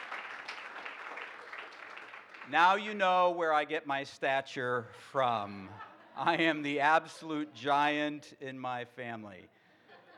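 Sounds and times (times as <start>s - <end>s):
crowd applause: 0.0s - 2.5s
speech: 2.5s - 9.6s.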